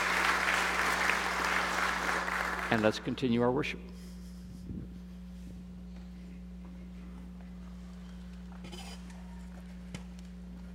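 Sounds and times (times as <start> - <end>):
audience applause: 0.0 - 3.3
speech: 2.7 - 4.0.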